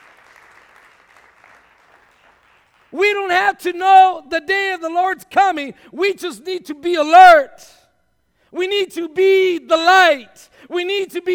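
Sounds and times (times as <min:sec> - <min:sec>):
church congregation clap offering during a service: 0:00.0 - 0:03.0
speech: 0:02.9 - 0:07.8, 0:08.5 - 0:11.3.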